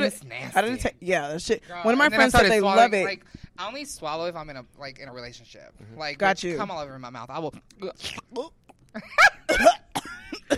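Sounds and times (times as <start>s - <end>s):
speech: 0.0s - 9.7s
voice imitating a raspy smoker's cough: 9.4s - 10.5s.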